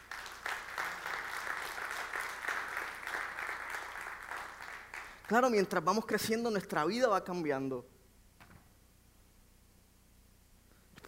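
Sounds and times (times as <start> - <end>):
audience applause: 0.0 - 5.3
speech: 5.3 - 7.9.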